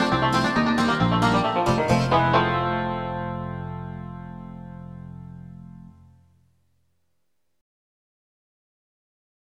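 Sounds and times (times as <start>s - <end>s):
banjo: 0.0s - 5.9s.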